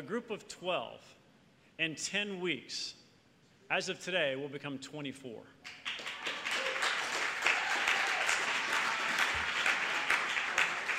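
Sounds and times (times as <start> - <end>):
speech: 0.0 - 1.2, 1.8 - 3.0, 3.7 - 6.0
audience applause: 5.7 - 10.9.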